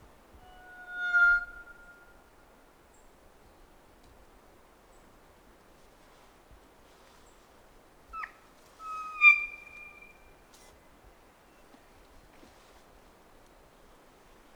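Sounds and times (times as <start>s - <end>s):
faint background hiss: 0.0s - 14.5s
kōkako whistling: 0.4s - 2.1s, 8.2s - 10.1s.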